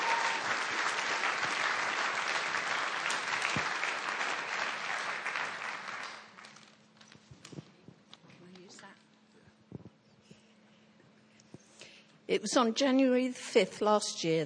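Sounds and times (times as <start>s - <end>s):
audience applause: 0.0s - 6.7s
speech: 12.3s - 14.4s.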